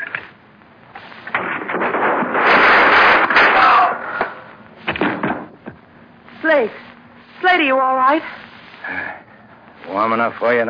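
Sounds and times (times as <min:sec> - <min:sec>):
rumbling clatter: 0:01.2 - 0:05.8
sharp cracking bangs: 0:01.2 - 0:05.8
loud rough blast of gunfire: 0:01.4 - 0:04.4
speech: 0:07.6 - 0:08.4, 0:09.9 - 0:10.6.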